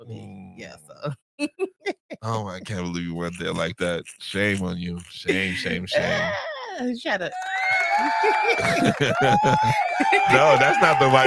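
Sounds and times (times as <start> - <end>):
speech: 0.1 - 1.5, 2.2 - 11.2
laughter: 2.3 - 6.6, 7.8 - 11.2
applause sound effect: 7.3 - 11.2.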